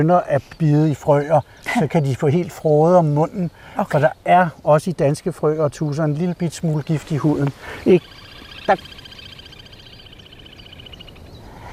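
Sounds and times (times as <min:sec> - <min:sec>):
speech: 0:00.0 - 0:09.0
little grebe calling: 0:06.6 - 0:11.7.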